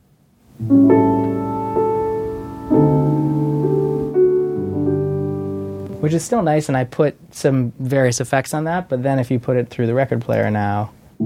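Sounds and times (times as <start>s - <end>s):
speech: 0.6s - 0.8s, 6.1s - 11.2s
sampled software piano playing sustained chords in the low and middle register: 0.6s - 6.6s.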